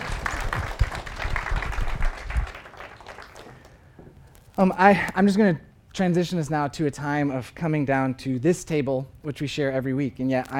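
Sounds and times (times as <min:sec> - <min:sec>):
audience round of applause: 0:00.0 - 0:03.8
speech: 0:04.6 - 0:10.5.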